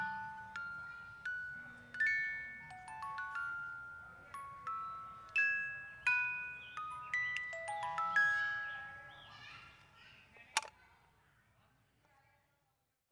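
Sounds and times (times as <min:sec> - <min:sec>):
tiny train music box: 0:00.0 - 0:09.7.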